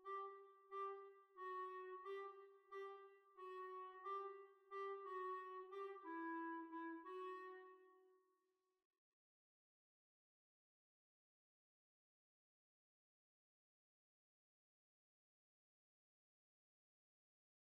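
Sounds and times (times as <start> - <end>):
Swiss waltz: 0.0 - 7.9.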